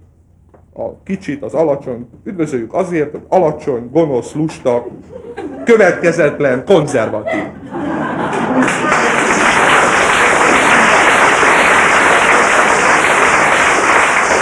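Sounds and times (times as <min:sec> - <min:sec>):
speech: 0:00.8 - 0:08.0
laughter: 0:04.3 - 0:14.4
audience applause: 0:07.6 - 0:14.4.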